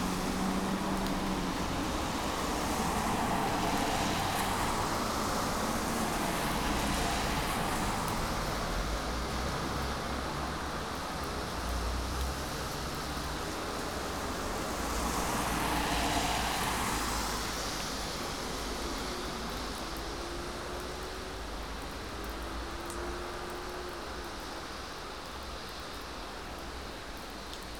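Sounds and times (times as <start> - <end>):
street traffic on a rainy day in Coquitlam BC Canada: 0.0 - 27.7.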